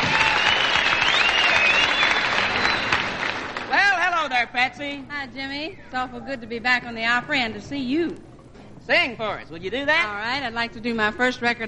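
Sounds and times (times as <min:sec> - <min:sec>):
audience applause for a guest star: 0:00.0 - 0:03.8
speech: 0:04.6 - 0:11.6.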